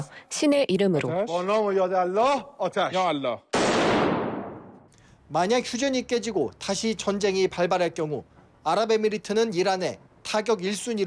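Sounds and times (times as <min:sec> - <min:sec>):
speech: 0:00.0 - 0:04.0, 0:05.3 - 0:11.0
gunshots fired on live TV: 0:03.5 - 0:04.8.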